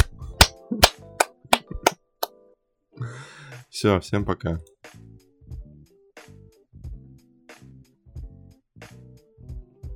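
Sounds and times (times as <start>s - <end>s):
hand clapping: 0.0s - 2.0s
speech: 3.8s - 4.7s.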